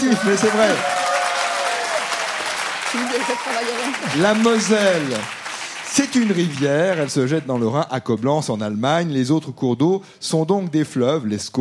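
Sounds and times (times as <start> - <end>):
quiz-show audience applauding: 0.0 - 7.9
speech: 0.1 - 1.0, 2.9 - 11.5.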